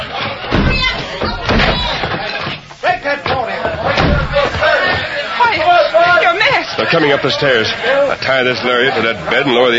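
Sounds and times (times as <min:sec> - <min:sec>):
voices shouting: 0:00.0 - 0:09.0
locked door being smashed in: 0:00.4 - 0:02.2, 0:03.9 - 0:04.6
speech: 0:06.8 - 0:09.7.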